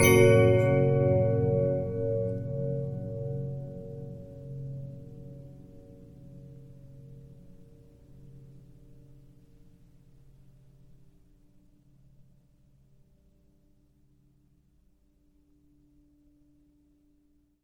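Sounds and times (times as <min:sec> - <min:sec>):
Regina 15-inch disc music box: 0:00.0 - 0:03.7.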